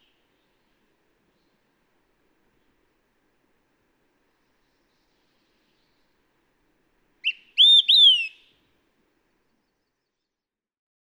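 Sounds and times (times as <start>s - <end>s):
Olive-sided Flycatcher calling: 7.2s - 8.5s.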